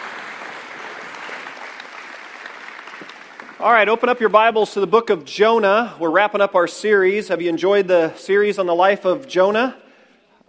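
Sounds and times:
audience applause: 0.0 - 4.6
speech: 3.6 - 9.8.

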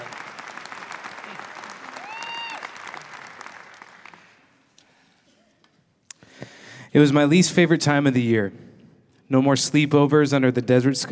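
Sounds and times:
audience applause welcoming a guest speaker: 0.0 - 4.5
speech: 6.9 - 8.6, 9.3 - 11.1.

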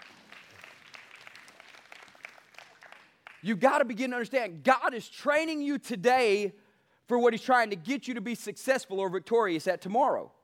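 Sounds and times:
audience hand clapping: 0.0 - 3.9
speech: 3.4 - 10.4.

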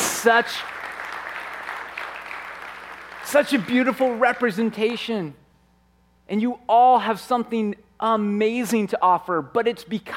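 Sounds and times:
audience applause: 0.0 - 4.4
speech: 0.2 - 0.8, 3.3 - 5.4, 6.3 - 10.1.

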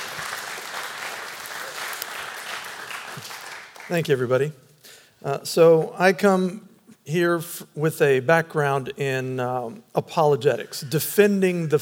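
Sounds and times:
audience applause welcoming a speaker at a church Bible-teaching gathering: 0.0 - 4.0
speech: 3.2 - 4.6, 5.2 - 11.8.

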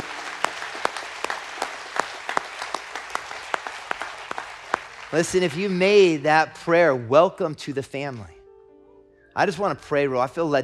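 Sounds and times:
audience applause: 0.0 - 6.2
speech: 5.1 - 8.4, 9.4 - 10.6.

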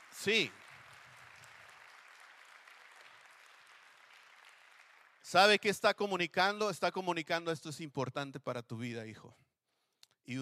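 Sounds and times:
audience applause: 0.0 - 5.3
speech: 0.2 - 0.6, 5.3 - 9.5, 10.3 - 10.4.

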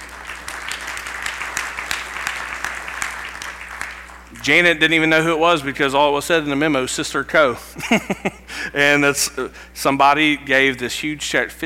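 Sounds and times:
audience clapping: 0.0 - 4.4
speech: 4.4 - 11.6.

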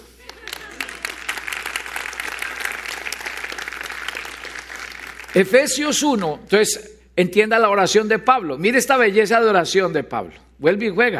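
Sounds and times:
audience applause: 0.0 - 5.5
speech: 5.4 - 11.1.

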